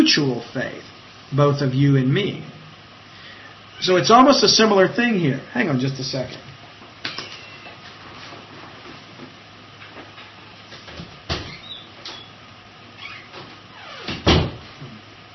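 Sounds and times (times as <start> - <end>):
speech: 0.0 - 2.6, 3.8 - 6.5
office door being opened: 10.9 - 12.3, 13.0 - 14.7.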